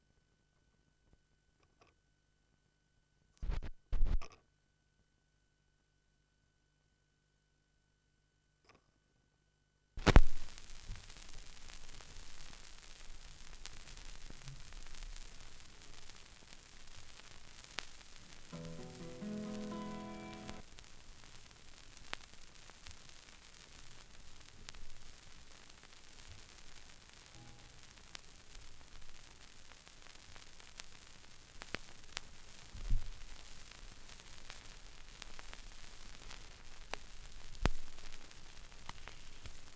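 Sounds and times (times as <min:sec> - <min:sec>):
vinyl record crackle: 0:03.4 - 0:04.2, 0:10.0 - 0:39.7
bluegrass gospel music: 0:18.2 - 0:20.6.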